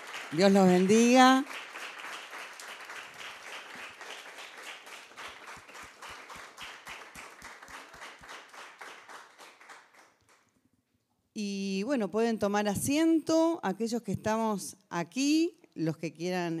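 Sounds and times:
audience applause: 0:00.0 - 0:10.4
speech: 0:00.3 - 0:01.7, 0:11.4 - 0:16.5.

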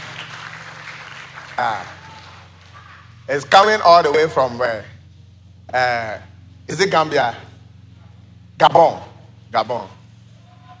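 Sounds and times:
audience clapping: 0:00.0 - 0:03.5
speech: 0:01.6 - 0:02.0, 0:03.3 - 0:04.9, 0:05.7 - 0:07.5, 0:08.6 - 0:10.0.

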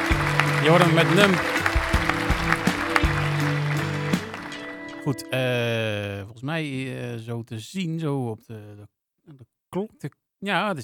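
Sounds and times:
applause: 0:00.0 - 0:05.1
speech: 0:00.6 - 0:01.6, 0:05.0 - 0:10.8.

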